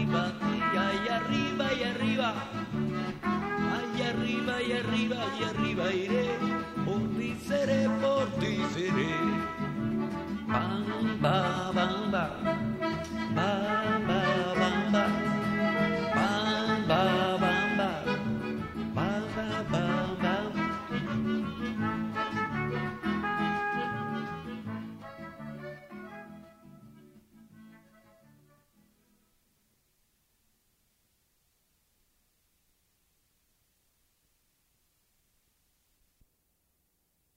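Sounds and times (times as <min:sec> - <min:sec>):
mariachi music: 0:00.0 - 0:29.4.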